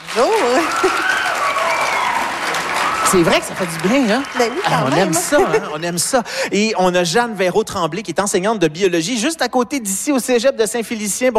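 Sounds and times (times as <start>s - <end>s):
audience applause greeting a naturalist guest on a show: 0.0s - 6.2s
speech: 0.2s - 1.0s, 3.1s - 11.3s
laughter: 4.3s - 6.7s.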